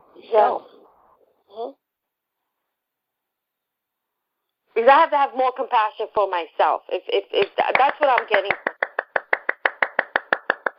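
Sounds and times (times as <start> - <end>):
speech: 0.2 - 0.7, 1.5 - 1.8, 4.8 - 8.7
hand clapping: 7.4 - 10.7.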